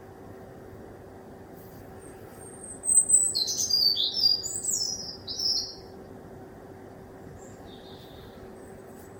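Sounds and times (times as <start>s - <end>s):
faint steady hum: 0.0s - 9.1s
bird song: 2.0s - 6.0s, 7.3s - 9.1s.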